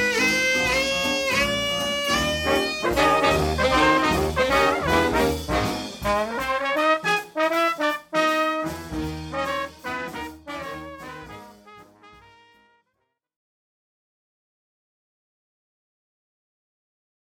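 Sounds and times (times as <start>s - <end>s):
swing band orchestra playing: 0.0s - 12.6s.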